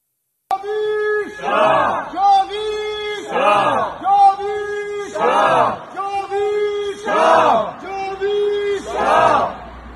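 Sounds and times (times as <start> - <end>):
protest crowd chanting a slogan in unison: 1.2 - 9.9.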